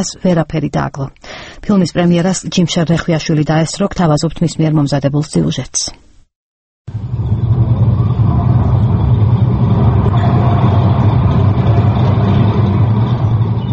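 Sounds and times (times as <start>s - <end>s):
speech: 0.0s - 6.0s
tank rumbling forward in a war film: 6.9s - 13.7s.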